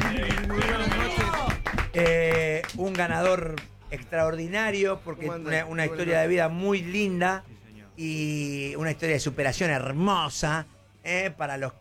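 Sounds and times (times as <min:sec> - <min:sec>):
audience applauding a singing-contest winner: 0:00.0 - 0:03.4
speech: 0:02.0 - 0:11.7.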